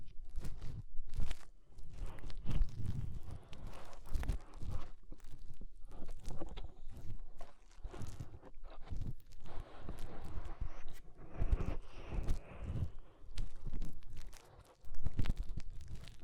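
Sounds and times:
fingers rubbing and scratching inside an ear: 0:00.2 - 0:16.2.

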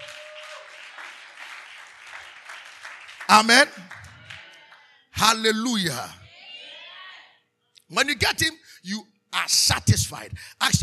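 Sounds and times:
audience clapping: 0:00.0 - 0:04.8
speech: 0:03.3 - 0:04.0, 0:05.2 - 0:06.2, 0:07.9 - 0:10.8.

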